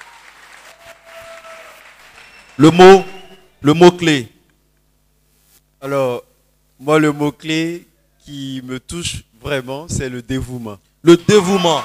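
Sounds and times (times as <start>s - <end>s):
audience applause: 0.0s - 3.4s
speech: 2.6s - 4.3s, 5.8s - 6.2s, 6.8s - 11.8s.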